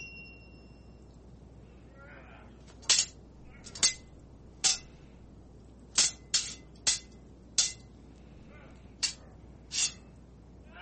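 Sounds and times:
sword ratcheting sound effect: 2.7s - 4.1s, 4.7s - 4.9s, 6.0s - 7.9s, 9.7s - 10.1s.

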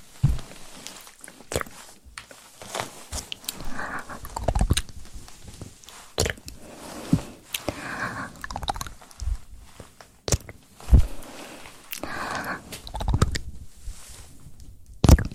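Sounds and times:
mic handling tapping, gripping and swirling rubs: 0.0s - 1.0s, 2.5s - 7.6s, 10.7s - 14.8s
low rumble and soft hiss: 0.0s - 15.2s
wet mouth clicks and smacks: 4.2s - 4.9s, 8.4s - 8.9s, 10.3s - 10.6s, 12.8s - 13.5s, 15.0s - 15.3s.

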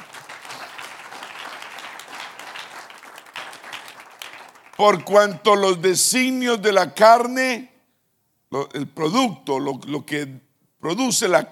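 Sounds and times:
audience applause: 0.0s - 5.2s
speech: 4.8s - 7.7s, 8.5s - 11.5s.

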